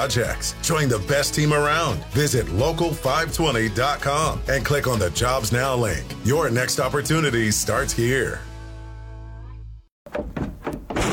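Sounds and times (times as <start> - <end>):
speech: 0.0 - 8.5
door slamming and breaking: 10.0 - 11.1.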